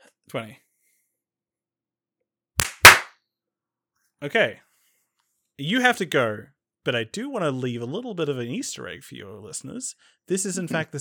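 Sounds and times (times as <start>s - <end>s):
speech: 0.3s - 0.6s, 4.2s - 4.7s, 5.6s - 10.9s
single hand clap: 2.6s - 3.1s.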